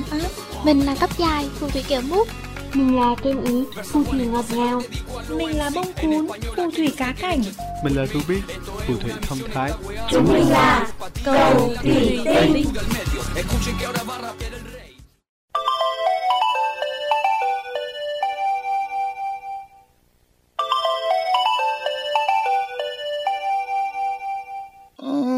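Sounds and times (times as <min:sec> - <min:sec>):
speech: 0:00.1 - 0:14.6
melodic phone ringtone: 0:15.6 - 0:19.9, 0:20.6 - 0:24.9.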